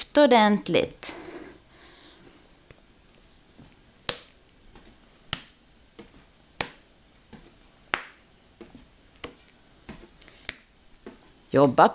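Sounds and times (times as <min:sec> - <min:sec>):
quiet hum: 0:00.0 - 0:11.9
speech: 0:00.2 - 0:01.0, 0:11.6 - 0:11.9
hands clapping on knees: 0:03.6 - 0:11.8.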